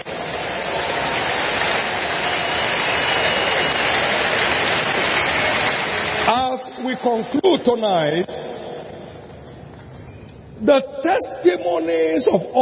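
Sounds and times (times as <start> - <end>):
crowd clapping: 0.0 - 7.6
speech: 6.9 - 8.5, 10.6 - 12.6.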